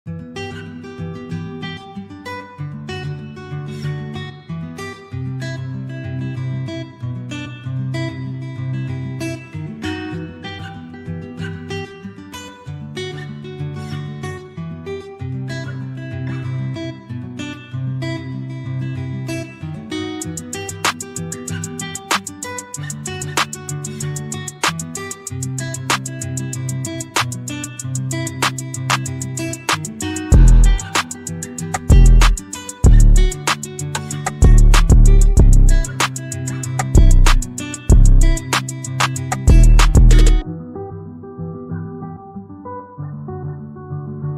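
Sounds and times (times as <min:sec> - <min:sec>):
instrumental music: 0:19.8 - 0:43.5.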